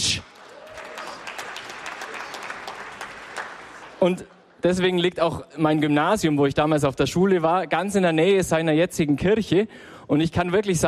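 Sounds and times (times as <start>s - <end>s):
audience clapping: 0.0s - 4.5s
speech: 4.0s - 10.8s.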